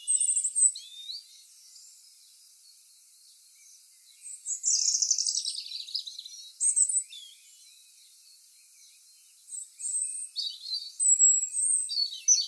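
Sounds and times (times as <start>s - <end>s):
British birds singing at dawn: 0.0s - 12.4s.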